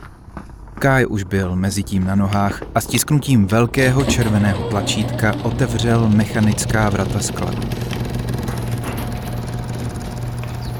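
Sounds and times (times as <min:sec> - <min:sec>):
speech: 0:00.8 - 0:07.9
motorcycle engine roaring: 0:04.0 - 0:10.7.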